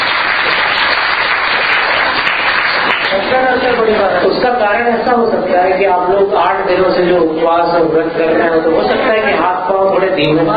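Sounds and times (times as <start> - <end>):
subdued audience applause at a religious gathering: 0.0 - 3.6
speech: 3.8 - 10.5.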